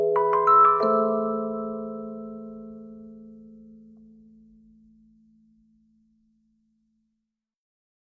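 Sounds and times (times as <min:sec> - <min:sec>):
music loop: 0:00.2 - 0:02.7.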